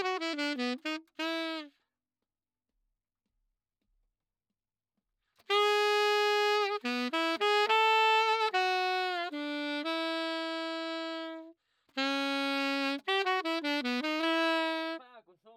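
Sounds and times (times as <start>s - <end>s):
saxophone: 0.0s - 1.8s, 5.4s - 15.1s.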